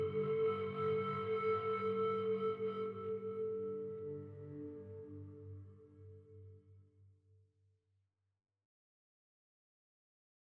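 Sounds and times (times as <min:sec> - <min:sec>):
temple exploration mood music: 0:00.0 - 0:06.6.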